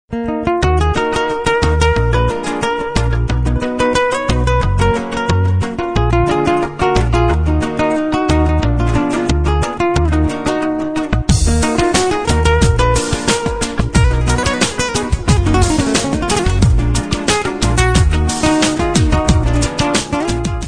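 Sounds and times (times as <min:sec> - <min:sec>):
guitar solo: 0:00.1 - 0:20.6.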